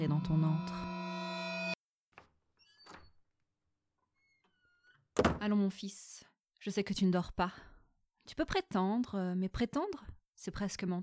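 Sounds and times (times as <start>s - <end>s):
speech: 0.0s - 1.0s, 5.4s - 7.7s, 8.3s - 11.0s
brief steady tone: 0.0s - 1.8s
bedroom door creaking open: 2.6s - 3.2s.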